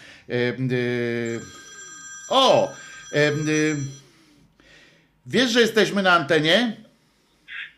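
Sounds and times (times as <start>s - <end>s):
speech: 0.3s - 1.6s, 2.3s - 4.0s, 5.3s - 6.8s
phone electronic ringtone: 1.2s - 4.2s.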